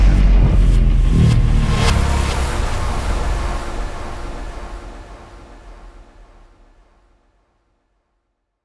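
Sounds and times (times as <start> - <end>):
low bass loop: 0.0 - 3.4.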